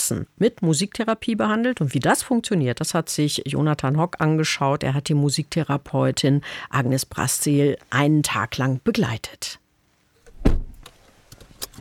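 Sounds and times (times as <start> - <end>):
speech: 0.1 - 9.6
red Opel Corsa car door thud: 10.3 - 10.8.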